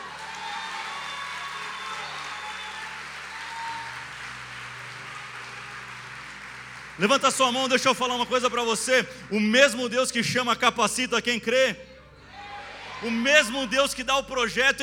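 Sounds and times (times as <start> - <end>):
audience applause: 0.0 - 9.5
speech: 7.0 - 11.9, 13.0 - 14.8.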